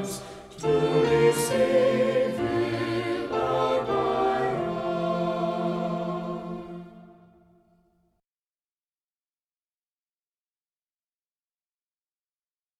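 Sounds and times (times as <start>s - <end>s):
music: 0.0s - 8.2s.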